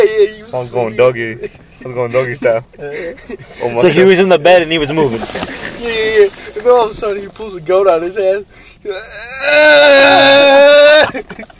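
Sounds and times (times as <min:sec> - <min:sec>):
speech: 0:00.0 - 0:11.5
person imitating a sleepy moan: 0:08.9 - 0:11.2.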